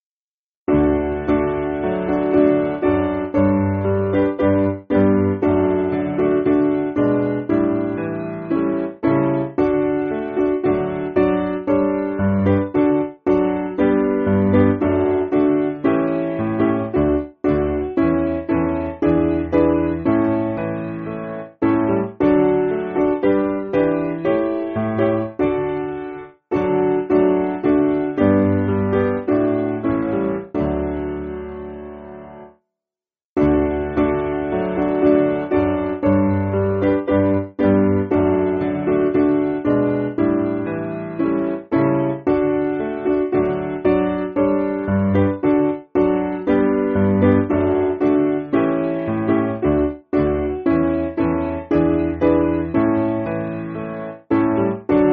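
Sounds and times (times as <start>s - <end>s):
piano: 0.7s - 32.6s, 33.4s - 55.1s.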